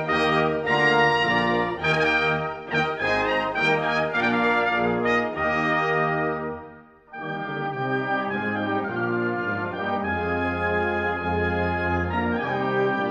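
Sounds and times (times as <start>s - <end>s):
trumpet prelude: 0.0s - 13.1s.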